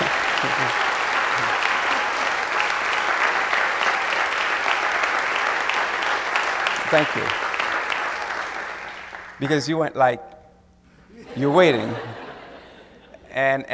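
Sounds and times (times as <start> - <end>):
laughter: 0.0 - 1.9, 11.1 - 13.4
audience applause: 0.0 - 9.5
speech: 6.9 - 7.4, 9.4 - 10.4, 11.4 - 12.1, 13.4 - 13.7.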